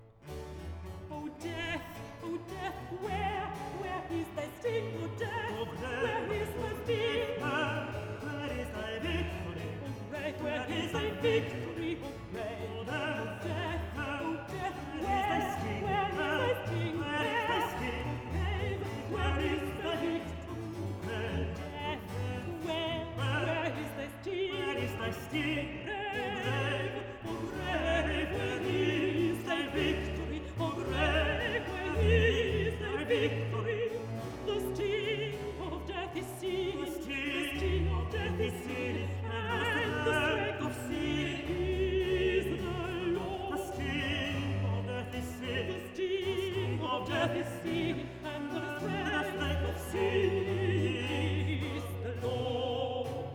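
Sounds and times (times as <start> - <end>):
vocal duet: 0.9 - 53.3.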